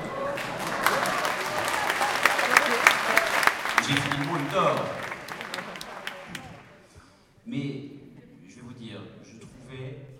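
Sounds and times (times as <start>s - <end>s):
audience applause: 0.0s - 6.9s
speech: 3.9s - 5.1s.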